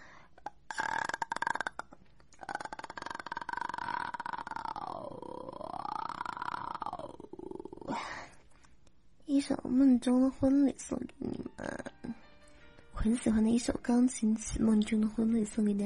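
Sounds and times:
voice holding creaky vocal fry: 0:00.3 - 0:08.4
speech: 0:09.3 - 0:11.8, 0:13.0 - 0:15.8.

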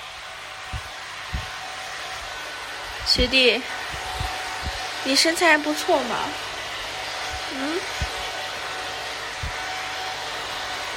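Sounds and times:
hair dryer blowing: 0:00.0 - 0:10.9
soft low thumps: 0:00.7 - 0:01.5, 0:03.9 - 0:04.8
speech: 0:03.1 - 0:03.9, 0:05.0 - 0:06.5.

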